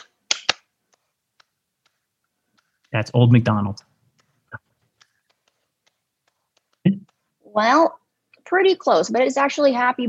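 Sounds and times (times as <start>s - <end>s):
hand claps clapping a song rhythm: 0.0s - 3.0s, 4.1s - 7.3s
speech: 2.9s - 3.9s, 7.6s - 10.0s.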